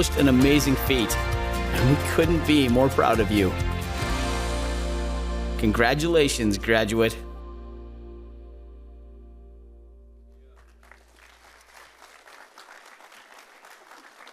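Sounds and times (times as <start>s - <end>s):
speech: 0.0s - 3.8s, 5.6s - 7.3s
low resonant organ-like chord: 0.2s - 10.8s
large indoor crowd applause: 10.5s - 14.3s.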